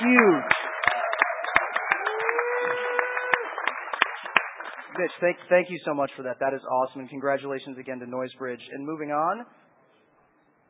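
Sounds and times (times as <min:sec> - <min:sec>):
audience applause: 0:00.0 - 0:05.0
whistle or whoop: 0:01.8 - 0:03.5
speech: 0:05.0 - 0:09.6.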